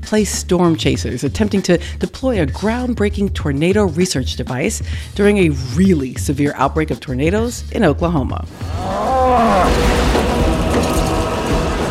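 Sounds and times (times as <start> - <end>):
speech: 0.1 - 10.1
cow mooing in a movie clip: 8.6 - 11.8.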